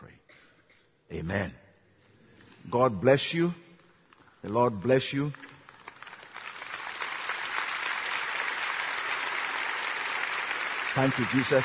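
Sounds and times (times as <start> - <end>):
speech: 1.1 - 1.6, 2.6 - 3.6, 4.4 - 5.5, 11.0 - 11.6
audience clapping: 4.1 - 11.6.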